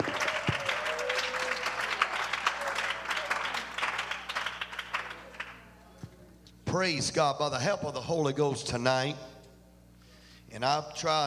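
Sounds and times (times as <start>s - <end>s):
audience clapping: 0.0s - 6.0s
speech: 6.8s - 9.3s, 10.6s - 11.2s.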